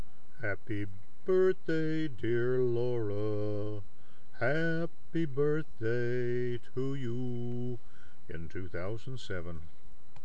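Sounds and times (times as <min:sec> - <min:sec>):
people singing for a birthday: 0:00.4 - 0:03.8, 0:04.4 - 0:07.8.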